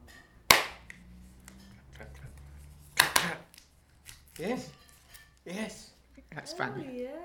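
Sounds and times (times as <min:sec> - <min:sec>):
child clapping hands: 0:00.5 - 0:01.0, 0:03.0 - 0:03.4
speech: 0:04.4 - 0:04.8, 0:05.5 - 0:07.2.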